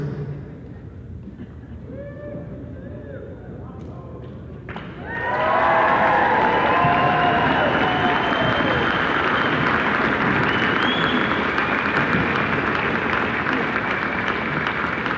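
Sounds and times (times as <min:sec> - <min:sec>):
audience applause: 0:05.0 - 0:15.1.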